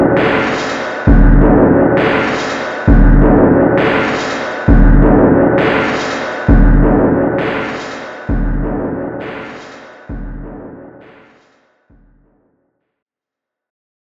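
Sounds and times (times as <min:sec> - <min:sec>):
looping record locked groove: 0:00.0 - 0:11.2.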